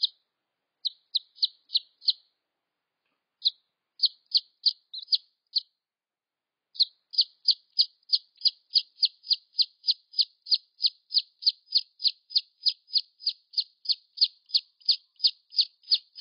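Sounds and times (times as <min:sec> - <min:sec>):
red junglefowl chick peeps: 0:00.0 - 0:00.2, 0:00.8 - 0:02.3, 0:03.4 - 0:05.7, 0:06.8 - 0:16.2.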